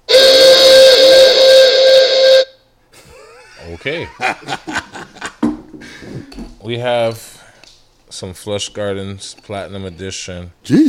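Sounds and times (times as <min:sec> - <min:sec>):
air horn sound effect: 0:00.0 - 0:02.7
laughter: 0:03.0 - 0:05.4
speech: 0:03.8 - 0:05.0, 0:06.0 - 0:07.4, 0:08.1 - 0:10.8.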